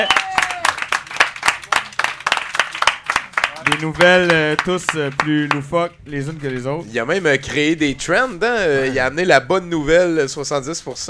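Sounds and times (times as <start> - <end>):
audience applause: 0.0 - 5.7
speech: 3.7 - 11.0.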